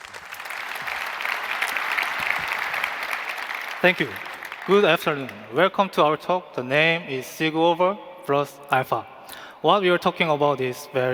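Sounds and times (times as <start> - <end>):
audience applause welcoming speakers: 0.0 - 5.3
speech: 3.8 - 11.1.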